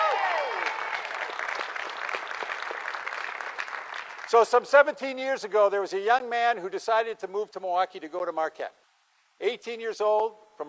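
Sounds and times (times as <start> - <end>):
audience applause: 0.0 - 4.4
speech: 4.3 - 8.8, 9.4 - 10.6.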